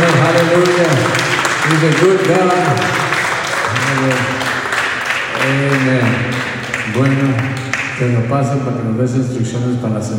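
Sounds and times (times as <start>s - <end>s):
audience clapping: 0.0s - 8.4s
speech: 1.7s - 3.0s, 4.0s - 4.4s, 5.5s - 10.1s.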